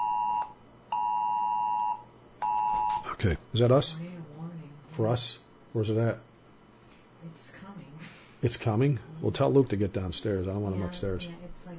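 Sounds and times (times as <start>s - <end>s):
phone emergency alert beeps for a tornado warning: 0.0s - 3.0s
speech: 3.2s - 4.1s, 5.0s - 6.3s, 7.2s - 11.7s.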